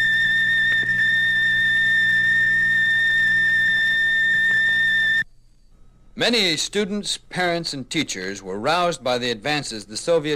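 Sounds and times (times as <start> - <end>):
low hum: 0.0 - 6.4
Explorer 2 satellite radio signal whine: 0.0 - 10.3
faint static: 0.0 - 10.3
speech: 6.2 - 10.3.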